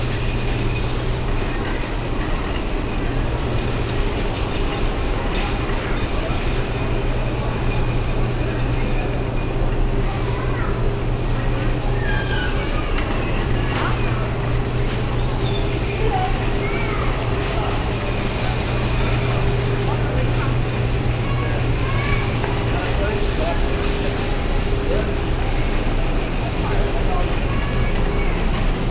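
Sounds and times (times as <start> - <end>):
supermarket ambience in Brazil: 0.0 - 28.9.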